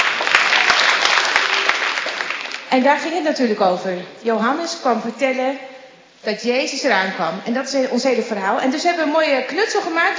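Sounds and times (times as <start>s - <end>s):
church group applauding: 0.0s - 2.8s
speech: 2.7s - 10.1s.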